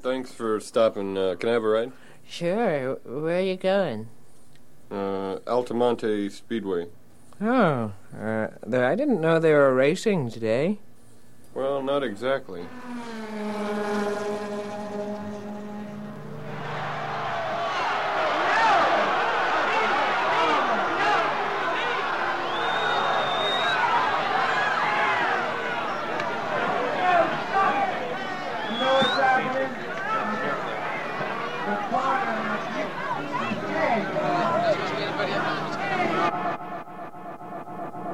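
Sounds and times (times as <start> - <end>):
speech: 0.0 - 4.2, 4.9 - 10.9, 11.6 - 13.5
sustained amplified tone on a concert stage: 12.6 - 18.0, 32.5 - 38.1
crowd noise: 13.5 - 38.1
chaotic shouting voices in a scuffle on a concert stage: 16.1 - 37.1.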